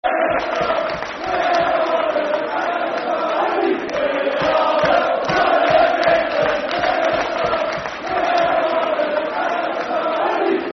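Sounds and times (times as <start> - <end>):
football crowd chanting: 0.0 - 10.7.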